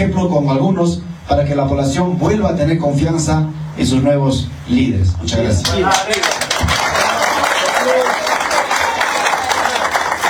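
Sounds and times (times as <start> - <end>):
speech: 0.0 - 6.4
audience applause: 5.6 - 10.2.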